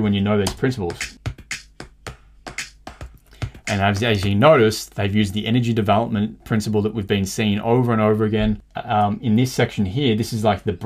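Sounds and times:
speech: 0.0s - 1.2s, 3.7s - 10.8s
layered hand claps in a music track: 0.5s - 4.4s.

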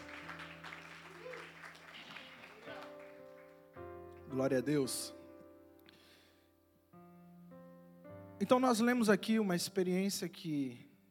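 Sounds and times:
church audience applause: 0.0s - 3.7s
speech: 4.4s - 5.2s, 8.4s - 10.9s.

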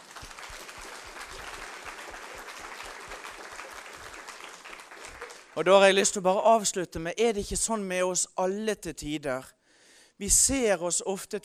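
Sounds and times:
applause: 0.0s - 6.2s
speech: 5.6s - 9.6s, 10.2s - 11.4s.

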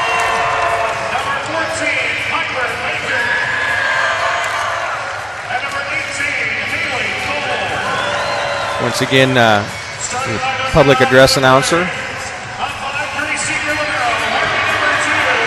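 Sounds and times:
large indoor crowd applauding: 0.0s - 11.6s, 13.2s - 15.4s
crowd whistles: 7.6s - 10.2s
speech: 8.8s - 12.0s.

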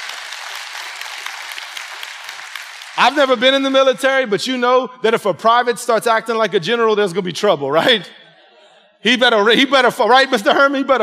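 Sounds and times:
crowd applauding: 0.0s - 4.0s
speech: 3.0s - 8.2s, 9.0s - 11.0s.

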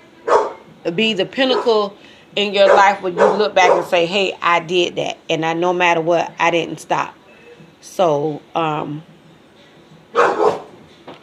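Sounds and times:
pet dog barking in a home recording: 0.3s - 0.6s, 2.6s - 3.9s, 10.2s - 10.7s
speech: 0.8s - 7.2s, 7.8s - 9.1s, 10.1s - 10.4s.

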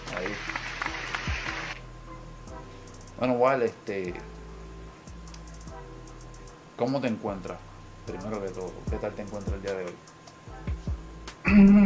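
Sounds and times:
applause: 0.1s - 1.4s
speech: 3.2s - 4.4s, 6.8s - 10.1s, 11.5s - 11.8s.

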